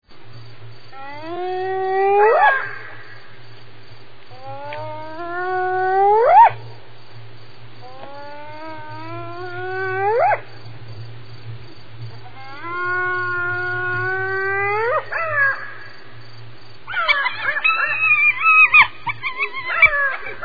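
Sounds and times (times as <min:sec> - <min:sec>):
spotted hyena Crocuta crocuta uttering warbling squeals: 0:01.0 - 0:03.2, 0:04.4 - 0:06.6, 0:07.8 - 0:10.4, 0:12.2 - 0:15.9, 0:16.9 - 0:20.4.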